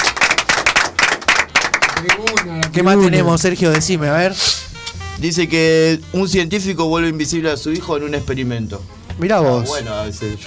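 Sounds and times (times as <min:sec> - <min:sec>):
studio audience applause: 0:00.0 - 0:03.9
speech: 0:02.0 - 0:10.4.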